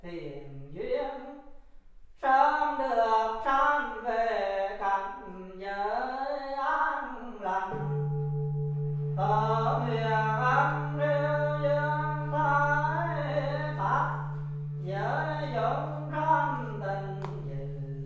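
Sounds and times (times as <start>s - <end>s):
chants and prayers at a Buddhist temple mass in Marseille: 2.2s - 8.3s, 9.0s - 18.0s
percussion at a Buddhist temple mass in Marseille: 7.0s - 18.0s.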